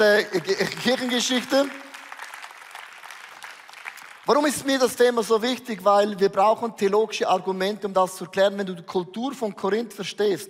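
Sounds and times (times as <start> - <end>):
speech: 0.0 - 1.9, 4.3 - 10.4
audience applause: 0.0 - 4.7.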